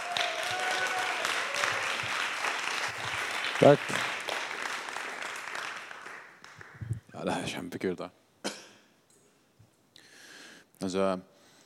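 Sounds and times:
audience applause: 0:00.0 - 0:06.9
speech: 0:03.6 - 0:04.1, 0:07.5 - 0:08.2, 0:10.8 - 0:11.3.

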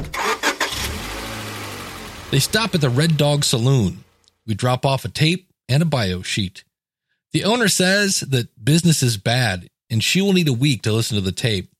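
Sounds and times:
Volkswagen Rabbit car engine starting: 0:00.0 - 0:04.4
speech: 0:02.3 - 0:06.7, 0:07.3 - 0:11.7.

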